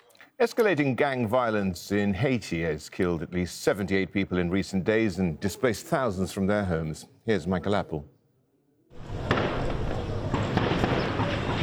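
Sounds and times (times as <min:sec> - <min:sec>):
speech: 0:00.4 - 0:08.2
volley of gunfire: 0:09.1 - 0:11.6.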